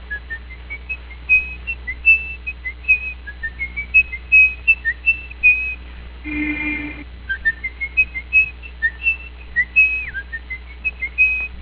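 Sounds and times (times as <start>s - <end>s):
whistle: 0.1s - 11.5s.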